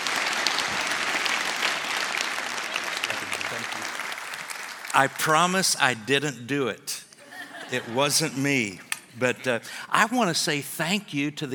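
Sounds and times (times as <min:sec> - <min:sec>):
audience applause: 0:00.0 - 0:05.4
speech: 0:05.0 - 0:07.0, 0:07.7 - 0:11.5
laughter: 0:07.2 - 0:08.8.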